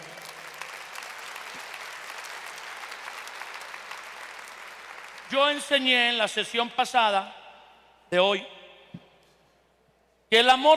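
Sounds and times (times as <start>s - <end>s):
audience applauding: 0.0s - 5.3s
speech: 5.3s - 7.4s, 8.1s - 8.6s, 10.3s - 10.7s.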